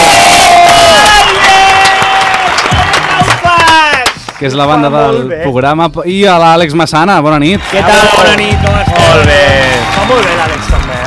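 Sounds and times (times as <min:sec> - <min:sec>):
audience applause: 0:00.0 - 0:04.5, 0:07.6 - 0:11.0
speech: 0:04.4 - 0:11.0.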